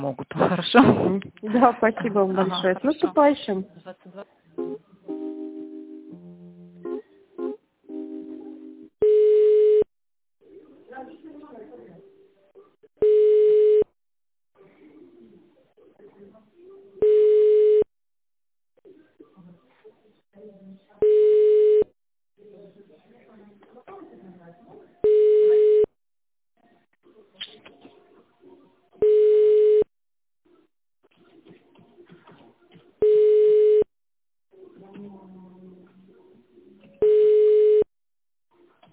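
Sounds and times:
speech: 0.0 - 4.8
telephone line beeps as a call is transferred: 9.0 - 9.9, 13.0 - 13.9, 17.0 - 17.9, 21.0 - 21.9, 25.0 - 25.9, 29.0 - 29.9, 33.0 - 33.9, 37.0 - 37.9.

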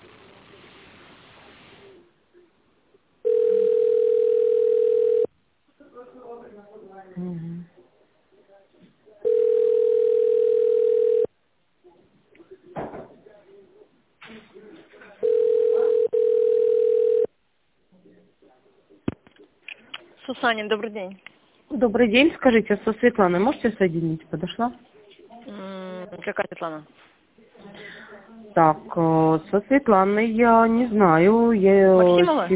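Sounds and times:
telephone ringback tone: 3.2 - 5.3, 9.2 - 11.3, 15.2 - 17.3
speech: 20.4 - 24.9, 26.3 - 27.1, 28.6 - 32.5.

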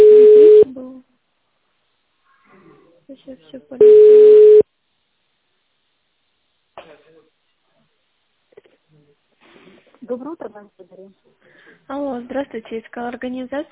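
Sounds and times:
telephone ringback tone while waiting to be connected: 0.0 - 0.7, 3.8 - 4.6
speech: 3.4 - 4.2, 10.2 - 13.7.

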